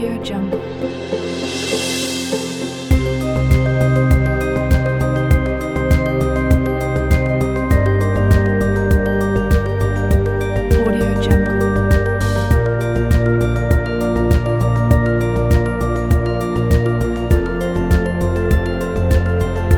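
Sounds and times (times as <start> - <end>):
inspirational Christmas cinematic uplifting music: 0.0 - 19.7.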